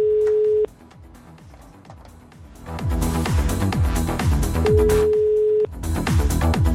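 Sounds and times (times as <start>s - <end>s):
outgoing-call telephone ringback tone: 0.0s - 0.7s, 4.7s - 5.7s
loud rhythmic music: 0.0s - 6.7s.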